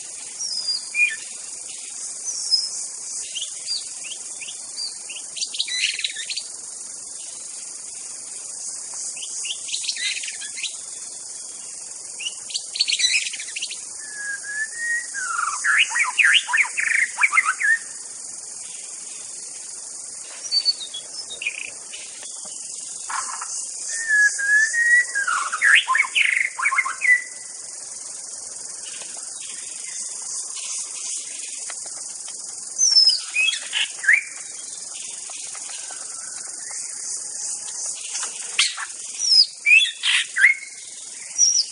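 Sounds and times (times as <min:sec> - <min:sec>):
high-pitched hiss: 0:00.0 - 0:41.7
White-rumped shama song: 0:14.0 - 0:16.0, 0:23.9 - 0:25.8.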